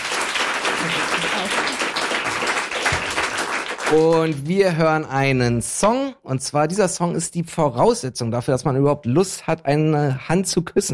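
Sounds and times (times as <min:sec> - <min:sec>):
audience applause: 0:00.0 - 0:04.5
speech: 0:00.8 - 0:01.8, 0:03.9 - 0:10.9.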